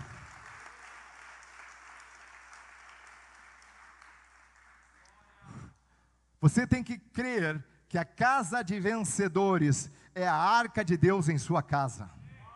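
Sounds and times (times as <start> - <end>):
audience applause: 0.0 - 5.0
speech: 6.4 - 12.2.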